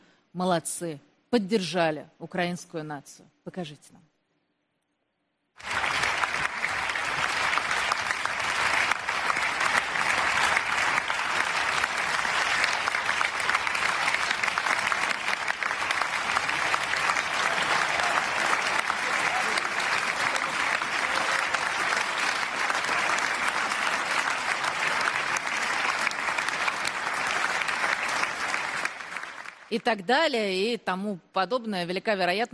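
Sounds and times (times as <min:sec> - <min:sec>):
speech: 0:00.4 - 0:04.1, 0:29.8 - 0:32.5
standing applause in parliament: 0:05.6 - 0:30.0.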